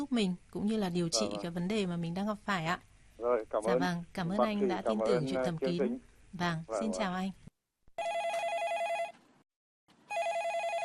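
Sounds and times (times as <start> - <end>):
speech: 0.0 - 7.4
telephone ringing as a listener calls in to a radio call-in show: 8.0 - 9.2, 10.1 - 10.8.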